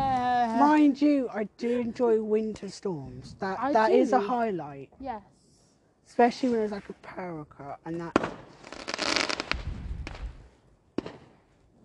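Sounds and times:
speech: 0:00.8 - 0:05.4, 0:06.1 - 0:08.6
fireworks exploding in the distance: 0:08.0 - 0:11.4.

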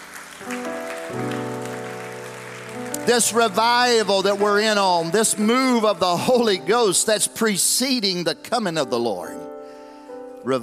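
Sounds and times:
people clapping: 0:00.0 - 0:06.8
speech: 0:00.4 - 0:01.4, 0:03.1 - 0:09.5, 0:10.4 - 0:10.6.

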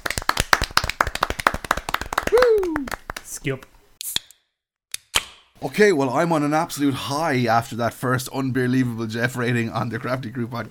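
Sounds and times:
quick round of applause: 0:00.0 - 0:03.6
speech: 0:03.4 - 0:03.7, 0:05.6 - 0:10.7.

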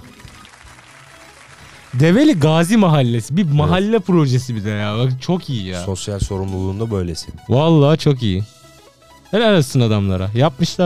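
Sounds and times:
audience applause: 0:00.0 - 0:03.2
speech: 0:01.9 - 0:08.6, 0:09.3 - 0:10.8.

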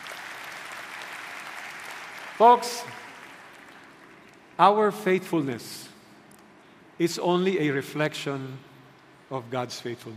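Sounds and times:
audience clapping: 0:00.0 - 0:04.6
speech: 0:02.4 - 0:03.0, 0:04.6 - 0:05.9, 0:07.0 - 0:08.7, 0:09.3 - 0:10.1.

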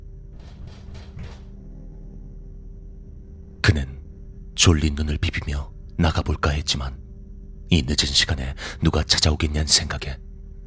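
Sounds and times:
knocking on the front door: 0:00.4 - 0:01.6
speech: 0:03.7 - 0:04.0, 0:04.6 - 0:07.0, 0:07.7 - 0:10.3.

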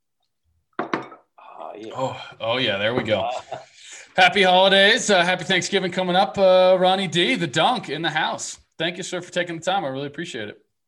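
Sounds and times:
glasses clinking in a toast: 0:00.8 - 0:01.3
speech: 0:01.8 - 0:10.6.

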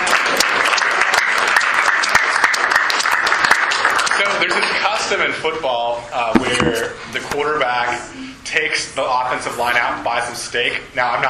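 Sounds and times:
audience applause: 0:00.0 - 0:04.8
speech: 0:05.1 - 0:11.2.

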